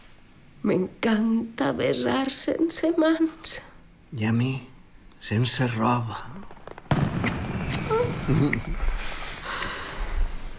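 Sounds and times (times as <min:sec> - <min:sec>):
speech: 0:00.6 - 0:06.5, 0:07.9 - 0:08.9
fireworks cracks and bangs: 0:05.5 - 0:10.5.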